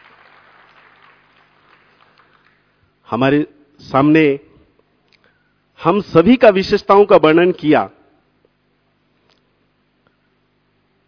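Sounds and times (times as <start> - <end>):
audience applause at a devotional gathering: 0.0 - 2.7
speech: 3.1 - 4.5, 5.8 - 8.0.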